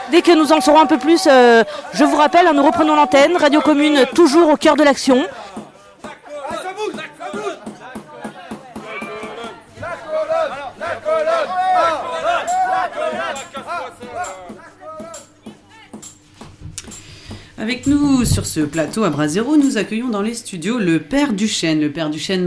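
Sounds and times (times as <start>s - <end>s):
impatient crowd chanting and shouting slogans: 0.0s - 15.6s
speech: 0.1s - 5.6s, 17.6s - 22.4s.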